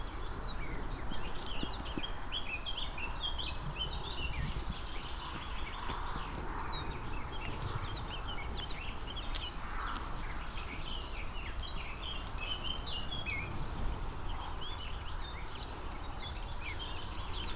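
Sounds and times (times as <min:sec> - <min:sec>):
sheep grazing and chewing: 0:00.0 - 0:17.5.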